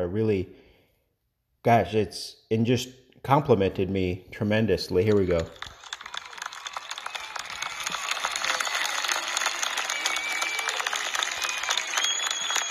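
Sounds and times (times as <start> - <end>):
speech: 0.0 - 0.7, 1.6 - 5.7
applause: 5.1 - 12.6.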